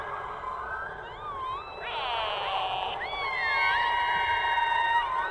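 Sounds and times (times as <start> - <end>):
orca biological sounds underwater: 0.4 - 5.2.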